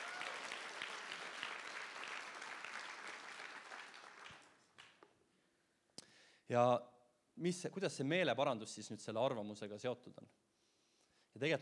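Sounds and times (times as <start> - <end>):
audience applause: 0.0 - 5.0
speech: 6.5 - 10.4, 11.4 - 11.6.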